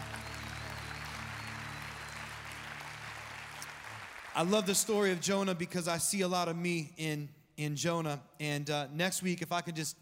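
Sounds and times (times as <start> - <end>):
church congregation applause: 0.0 - 5.6
speech: 4.4 - 10.0.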